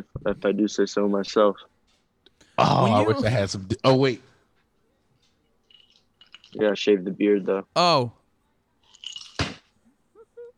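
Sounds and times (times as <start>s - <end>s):
speech: 0.0s - 1.7s, 2.6s - 4.3s, 6.5s - 8.2s
ice cube dropped: 8.9s - 9.7s.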